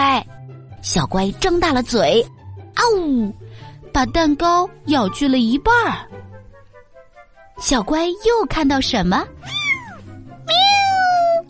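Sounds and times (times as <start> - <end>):
speech: 0.8 - 3.4, 4.0 - 6.1, 7.6 - 9.6
cat meowing: 9.4 - 11.4.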